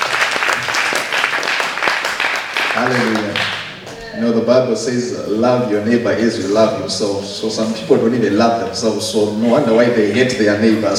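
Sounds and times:
audience clapping hands: 0:00.0 - 0:04.0
speech: 0:02.8 - 0:03.6, 0:04.2 - 0:10.9.

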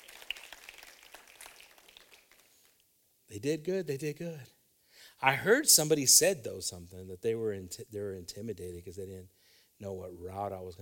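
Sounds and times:
soft golf clap from a small group: 0:00.0 - 0:02.9
speech: 0:03.3 - 0:04.6, 0:05.2 - 0:10.8.

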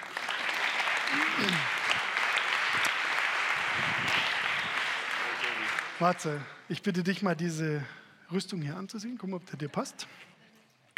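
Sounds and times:
applause: 0:00.0 - 0:06.6
speech: 0:01.1 - 0:01.8, 0:06.0 - 0:10.3.

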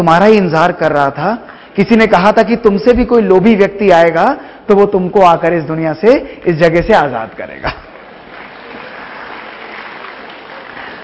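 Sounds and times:
speech: 0:00.0 - 0:07.8
audience clapping: 0:06.4 - 0:11.0.

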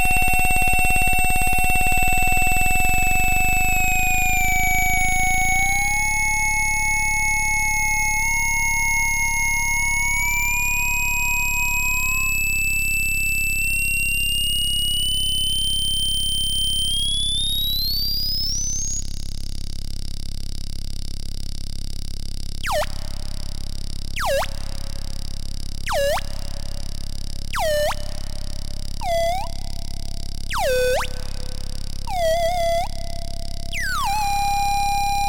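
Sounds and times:
steady hum: 0:00.0 - 0:17.0, 0:19.2 - 0:35.2
no-input mixer feedback tones on a vintage MACKIE 1604: 0:00.0 - 0:19.1, 0:27.6 - 0:35.2.

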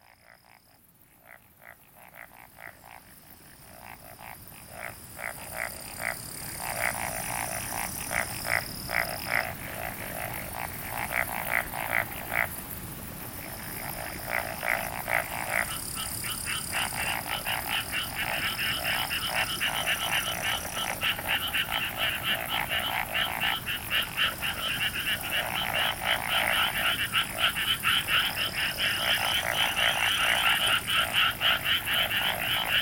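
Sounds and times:
background hiss: 0:00.0 - 0:32.8
frogs croaking: 0:00.0 - 0:32.8.

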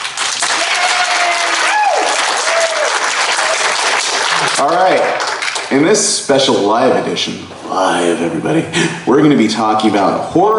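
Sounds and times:
crowd applauding: 0:00.0 - 0:05.8
faint whoops and cheers: 0:00.4 - 0:03.8
speech: 0:04.6 - 0:10.5.

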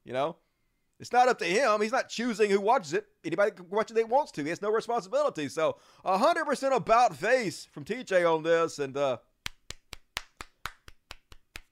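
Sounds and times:
speech: 0:00.1 - 0:00.4, 0:01.0 - 0:09.3
golf clap from one pair of hands: 0:09.4 - 0:11.7.

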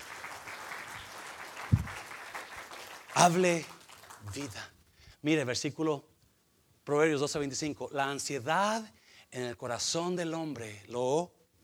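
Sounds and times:
audience applause: 0:00.0 - 0:04.5
speech: 0:03.2 - 0:06.1, 0:06.9 - 0:11.4.

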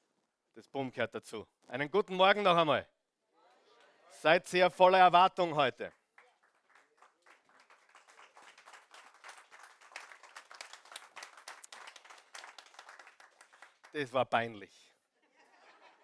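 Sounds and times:
speech: 0:00.6 - 0:02.9, 0:04.1 - 0:06.0, 0:14.0 - 0:14.8
audience clapping: 0:05.8 - 0:14.1.

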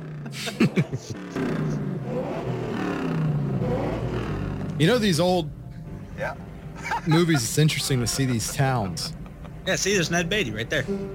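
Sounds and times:
car engine revving in an old movie scene: 0:00.0 - 0:05.2
laughter: 0:00.1 - 0:01.4, 0:06.8 - 0:09.7
speech: 0:00.3 - 0:02.4, 0:04.8 - 0:05.6, 0:06.2 - 0:11.1.

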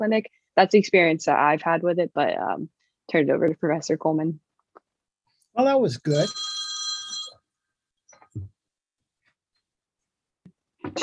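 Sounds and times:
speech: 0:00.0 - 0:04.4, 0:05.6 - 0:06.5, 0:10.8 - 0:11.0
phone ringing: 0:06.1 - 0:07.4.

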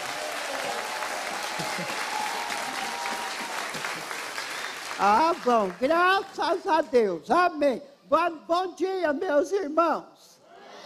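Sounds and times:
audience applause: 0:00.0 - 0:06.0
speech: 0:01.7 - 0:02.0, 0:05.0 - 0:10.3.

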